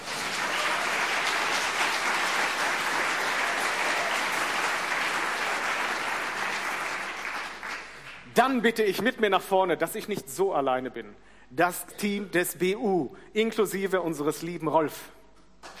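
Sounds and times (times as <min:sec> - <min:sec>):
audience applause: 0:00.0 - 0:08.2
speech: 0:08.4 - 0:15.2.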